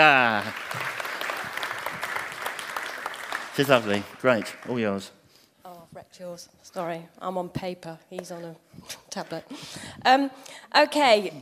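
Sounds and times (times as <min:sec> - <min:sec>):
speech: 0:00.0 - 0:00.9, 0:03.6 - 0:05.2, 0:06.0 - 0:11.4
audience clapping: 0:00.0 - 0:05.1.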